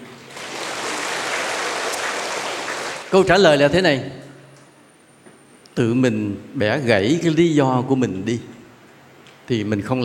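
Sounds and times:
audience applause: 0:00.3 - 0:03.1
speech: 0:03.1 - 0:04.2, 0:05.8 - 0:08.5, 0:09.5 - 0:10.0.

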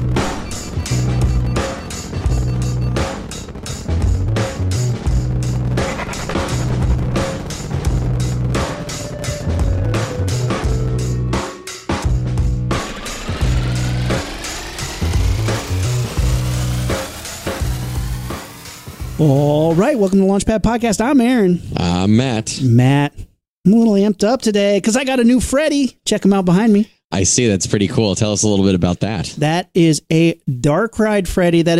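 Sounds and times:
rocket engines roaring at liftoff: 0:00.0 - 0:20.4
speech: 0:19.2 - 0:31.7.

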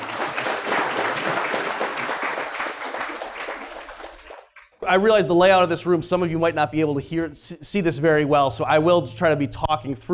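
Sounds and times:
audience applause: 0:00.0 - 0:04.8
speech: 0:04.9 - 0:10.1.

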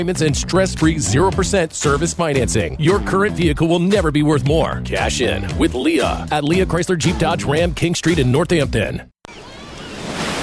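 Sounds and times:
speech: 0:00.0 - 0:09.1
ocean surf breaking at a beach: 0:09.3 - 0:10.4.

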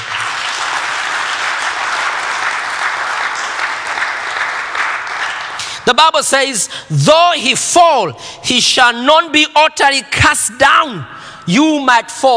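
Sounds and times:
audience clapping hands: 0:00.0 - 0:06.0
speech: 0:05.9 - 0:12.3.

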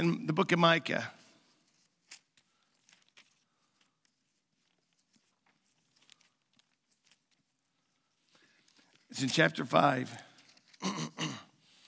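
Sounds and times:
speech: 0:00.0 - 0:01.2, 0:09.1 - 0:10.2, 0:10.8 - 0:11.5
person clearing throat: 0:10.8 - 0:11.6.

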